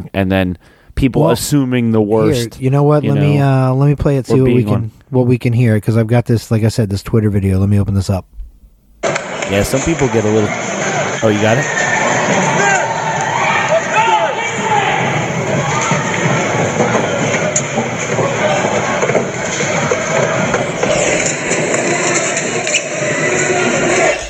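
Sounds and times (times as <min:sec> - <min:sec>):
speech: 0:00.2 - 0:08.4, 0:09.5 - 0:12.4
crowd of people stampeding: 0:09.0 - 0:24.2.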